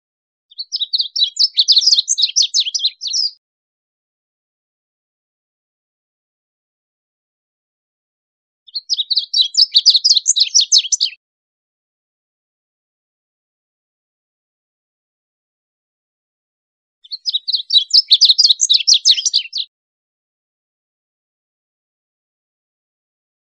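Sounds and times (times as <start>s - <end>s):
bird twittering: 0.5s - 3.4s, 8.7s - 11.2s, 17.0s - 19.7s.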